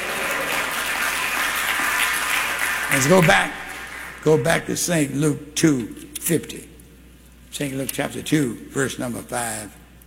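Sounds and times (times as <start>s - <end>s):
congregation clapping hands at a church service: 0.0s - 4.8s
speech: 2.9s - 3.6s, 4.2s - 6.7s, 7.5s - 9.8s.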